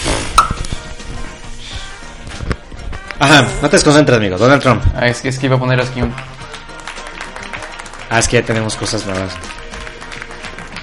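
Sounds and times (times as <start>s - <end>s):
speech: 3.2s - 6.4s, 8.1s - 9.6s
applause sound effect: 6.0s - 10.8s.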